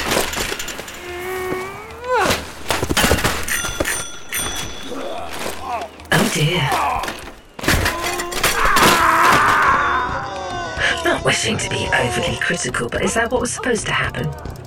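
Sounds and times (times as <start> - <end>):
crowd of bicycles crashing on pebbles: 0.0 - 11.0
speech: 11.2 - 14.6.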